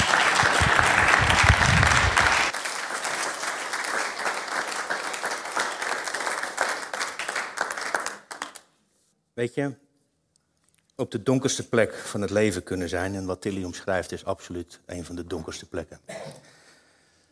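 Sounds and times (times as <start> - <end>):
audience applause: 0.0 - 8.6
speech: 9.4 - 9.8, 11.0 - 16.4.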